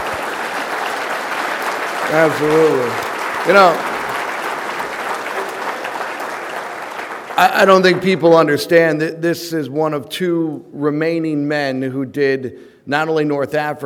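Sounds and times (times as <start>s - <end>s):
audience applause: 0.0s - 8.3s
speech: 2.1s - 3.9s, 7.4s - 13.8s.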